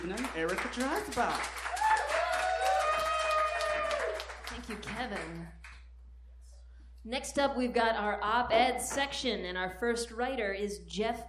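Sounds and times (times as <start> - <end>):
speech: 0.0 - 1.7, 4.6 - 5.6, 7.0 - 11.2
audience applause: 0.0 - 5.4.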